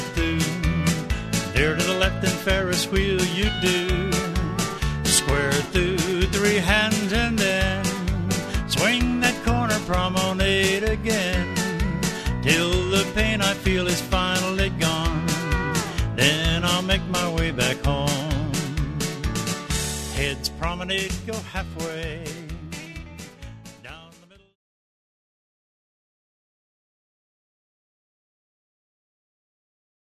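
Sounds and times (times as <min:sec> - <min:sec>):
person singing: 0:00.0 - 0:19.4, 0:20.1 - 0:23.1, 0:23.8 - 0:24.6
square dance music: 0:00.0 - 0:24.3.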